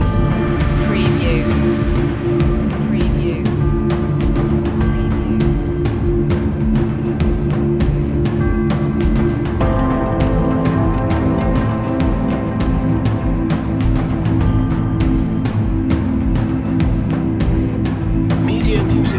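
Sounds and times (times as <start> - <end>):
ambient army music loop: 0.0 - 19.1.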